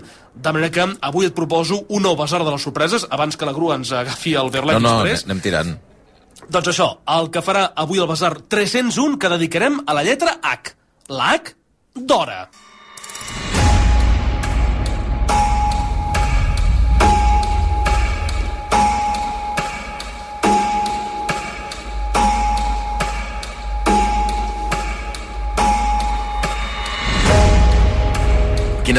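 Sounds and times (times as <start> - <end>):
speech: 0.4 - 12.6
sustained low hum: 13.2 - 28.9
clock ticking: 13.6 - 28.9.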